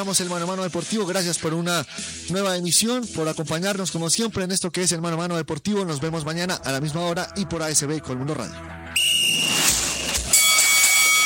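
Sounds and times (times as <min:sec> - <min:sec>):
speech: 0:00.0 - 0:09.1
boxing bell clanging: 0:09.8 - 0:11.2.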